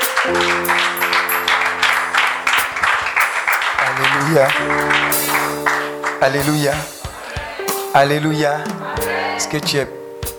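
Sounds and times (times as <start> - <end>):
sustained held musical chord: 0.0 - 6.7
audience at a worship gathering clapping: 0.0 - 7.5
speech: 0.3 - 0.8, 4.3 - 5.3, 6.2 - 7.0, 7.9 - 10.3.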